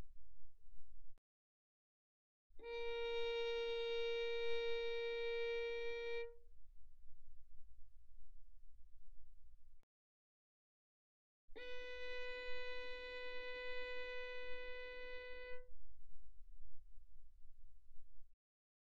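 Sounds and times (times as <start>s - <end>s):
violin arco pianissimo on D string: 2.6s - 6.5s, 11.6s - 15.8s.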